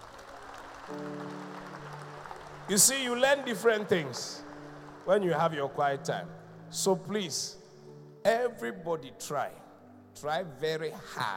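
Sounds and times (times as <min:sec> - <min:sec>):
audience clapping: 0:00.0 - 0:06.6
speech: 0:00.9 - 0:01.3, 0:02.7 - 0:07.6, 0:08.2 - 0:09.6, 0:10.2 - 0:11.3.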